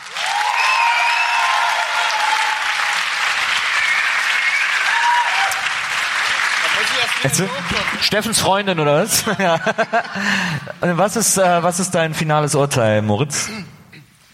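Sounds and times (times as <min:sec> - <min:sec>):
faint whistles and cheers: 0:00.0 - 0:05.8
audience applause: 0:00.0 - 0:08.7
speech: 0:07.2 - 0:13.7
laughter: 0:08.9 - 0:10.8.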